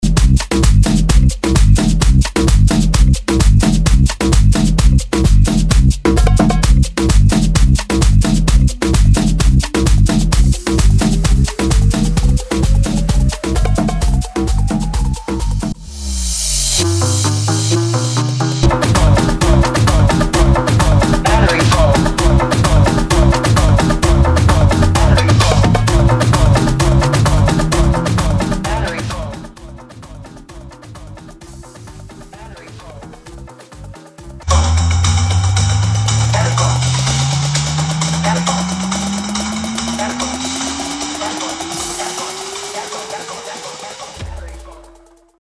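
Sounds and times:
130 bpm remix music: 0.0s - 45.4s.

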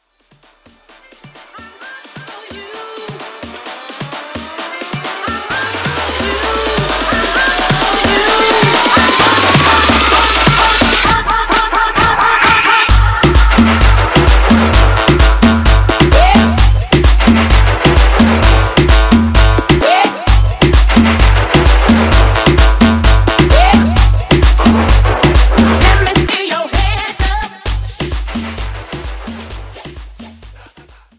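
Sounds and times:
guaracha music: 0.5s - 31.1s.

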